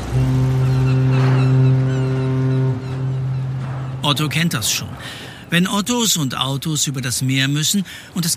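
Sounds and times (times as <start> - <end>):
ferry horn blast: 0.0 - 5.5
ferry engine rumble: 0.0 - 7.2
speech: 4.1 - 8.3.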